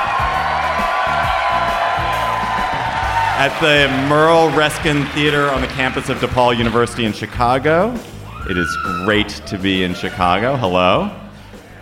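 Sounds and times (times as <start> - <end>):
crowd whooping: 0.0 - 6.8, 8.2 - 10.6
large rowdy live audience cheering in the Merle Reskin Theater at DePaul University: 0.0 - 10.7
speech: 3.4 - 11.2.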